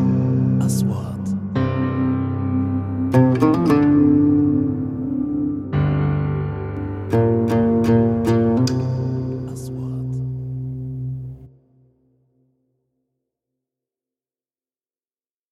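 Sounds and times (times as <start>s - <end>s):
documentary music: 0.0s - 11.6s.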